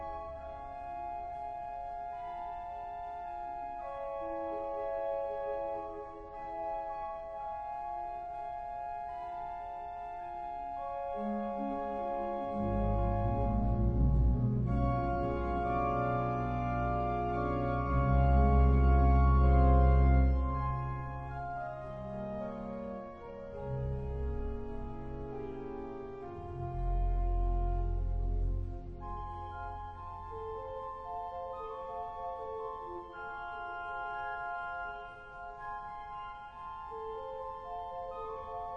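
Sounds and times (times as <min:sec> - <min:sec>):
Baroque pipe organ piece: 0:00.0 - 0:38.7.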